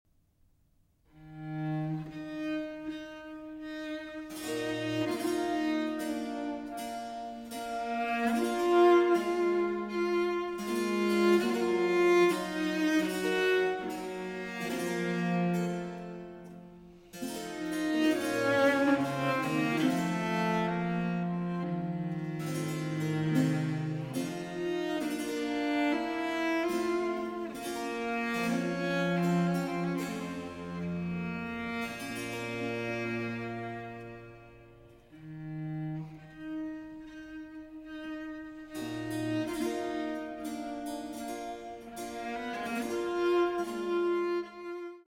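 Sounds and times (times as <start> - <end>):
cello and continuo sonata in E minor: 0.9 - 45.0.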